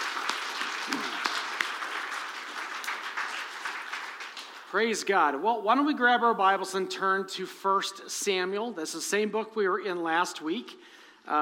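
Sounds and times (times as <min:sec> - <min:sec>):
crowd applauding: 0:00.0 - 0:05.1
speech: 0:04.7 - 0:11.4.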